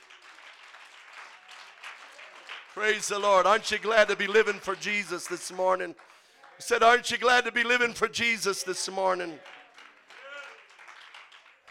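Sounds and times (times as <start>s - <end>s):
church congregation clapping during worship: 0.0s - 11.6s
speech: 2.8s - 9.6s.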